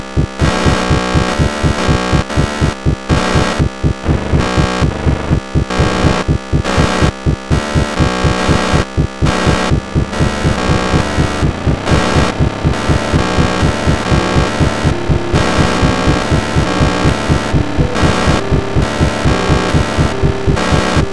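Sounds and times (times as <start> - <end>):
rhythmic noise: 0.0 - 21.1.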